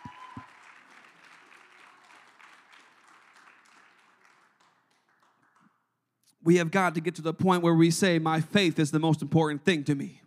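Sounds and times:
audience clapping hands: 0.0s - 5.8s
speech: 6.4s - 10.2s.

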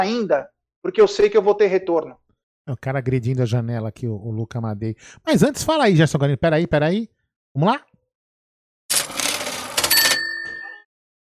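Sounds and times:
speech: 0.0s - 7.9s
cash-register style donation alert: 8.9s - 10.9s.

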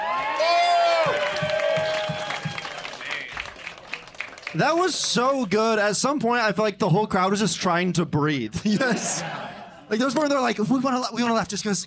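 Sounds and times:
crowd cheering and whooping: 0.0s - 4.0s
crowd clapping: 0.0s - 5.6s
speech: 4.6s - 11.8s
laughter: 8.6s - 10.0s.

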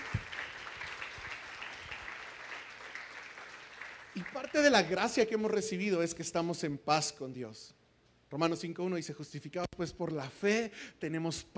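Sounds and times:
audience applause: 0.0s - 5.0s
speech: 4.2s - 11.5s.

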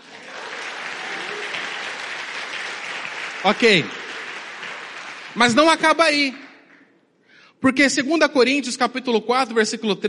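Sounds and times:
audience applause: 0.0s - 6.9s
speech: 3.4s - 4.0s, 5.4s - 6.4s, 7.6s - 10.0s.

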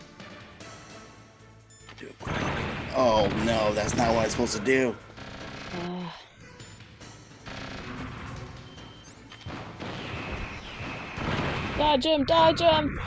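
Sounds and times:
low rumbling game soundscape: 0.0s - 13.0s
speech: 2.0s - 5.1s, 5.7s - 6.2s, 11.8s - 13.0s
Stinger missiles fired in Metal Gear Solid Integral: 2.2s - 4.6s, 9.5s - 12.2s.

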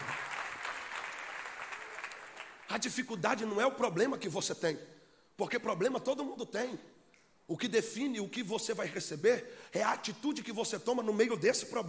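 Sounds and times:
audience applauding loudly: 0.0s - 2.8s
speech: 2.7s - 6.9s, 7.5s - 11.8s.

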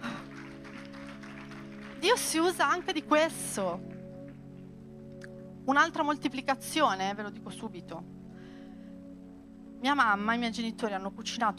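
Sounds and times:
audience applause: 0.0s - 2.2s
speech: 2.0s - 3.9s, 5.6s - 8.2s, 9.8s - 11.5s.

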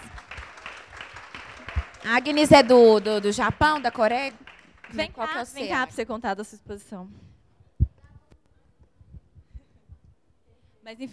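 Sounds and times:
audience applause: 0.0s - 5.7s
speech: 2.0s - 7.2s, 10.9s - 11.1s.

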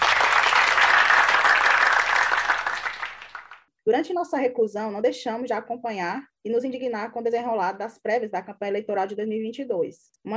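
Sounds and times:
applause sound effect: 0.0s - 3.7s
speech: 3.9s - 10.3s.

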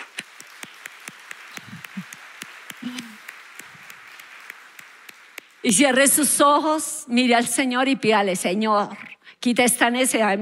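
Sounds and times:
audience applause: 0.0s - 5.7s
speech: 5.6s - 10.3s.

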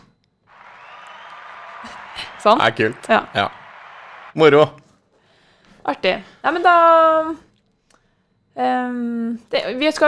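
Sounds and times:
recorded applause from an applause button: 0.5s - 4.7s
speech: 2.4s - 3.6s, 4.4s - 4.8s, 5.8s - 7.4s, 8.6s - 10.0s.

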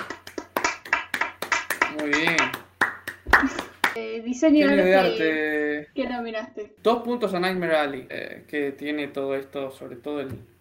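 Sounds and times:
applause: 0.0s - 4.0s
speech: 2.0s - 2.6s, 3.4s - 10.5s.

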